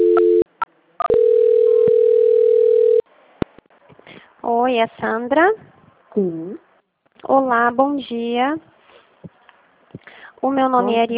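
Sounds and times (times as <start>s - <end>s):
telephone tones during a customer call transfer: 0.0s - 0.4s, 1.0s - 3.0s
speech: 4.7s - 6.6s, 7.2s - 8.7s, 10.4s - 11.1s.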